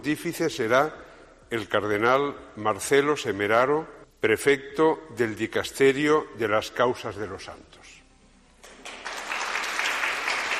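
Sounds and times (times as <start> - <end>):
speech: 0.0 - 8.0
applause from the sisters: 8.6 - 10.5.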